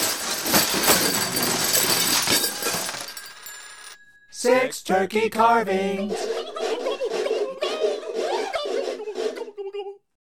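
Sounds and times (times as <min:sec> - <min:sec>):
closets crashing: 0:00.0 - 0:04.0
speech: 0:04.4 - 0:06.3
laughter: 0:06.0 - 0:10.0.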